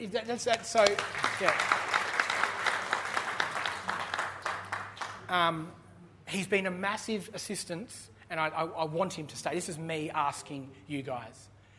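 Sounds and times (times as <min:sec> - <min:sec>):
speech: 0:00.0 - 0:02.0, 0:05.3 - 0:11.5
audience applause: 0:00.7 - 0:05.3.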